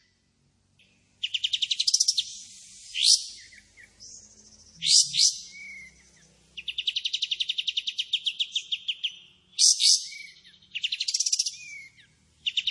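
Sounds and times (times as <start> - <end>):
Pied Triller singing rapid trills, sharp upswept notes and a thin whistle: 1.2 - 12.6.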